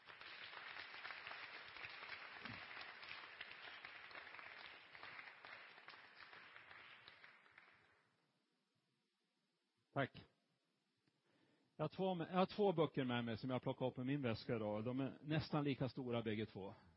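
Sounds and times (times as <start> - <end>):
audience applause: 0.0 - 7.9
speech: 10.0 - 10.3, 11.8 - 16.8.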